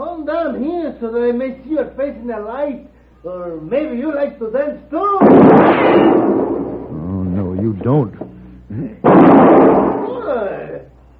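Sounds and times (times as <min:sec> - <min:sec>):
speech: 0:00.3 - 0:06.4, 0:07.6 - 0:09.0
gunshot shooting a gun from a man's hand: 0:05.2 - 0:07.0, 0:09.0 - 0:10.3.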